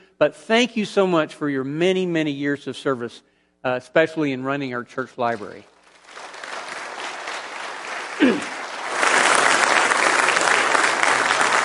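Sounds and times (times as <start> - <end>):
speech: 0.2 - 5.7
audience applause: 5.9 - 11.6.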